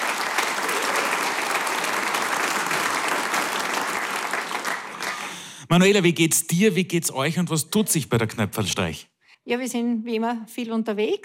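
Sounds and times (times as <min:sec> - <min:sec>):
sustained audience applause: 0:00.0 - 0:05.6
speech: 0:05.7 - 0:11.2.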